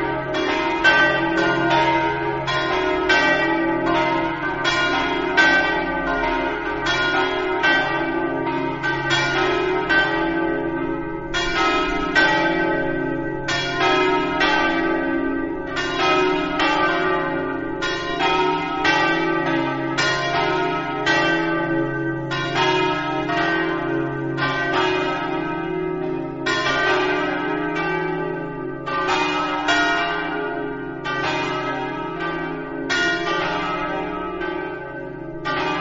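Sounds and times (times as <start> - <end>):
bells ringing: 0.0 - 35.7.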